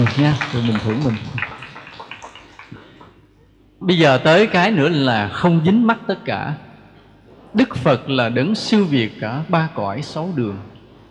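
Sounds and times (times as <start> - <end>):
speech: 0.0 - 1.4, 3.8 - 6.6, 7.5 - 10.7
audience applause: 0.0 - 3.2.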